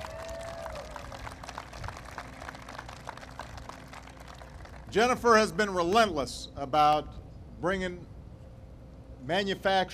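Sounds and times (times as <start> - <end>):
applause: 0.0 - 5.5
speech: 4.9 - 8.1, 9.2 - 9.9.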